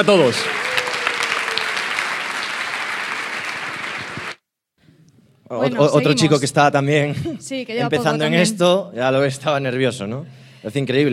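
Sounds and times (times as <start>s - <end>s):
speech: 0.0s - 0.7s, 5.5s - 11.1s
audience applause: 0.0s - 4.4s.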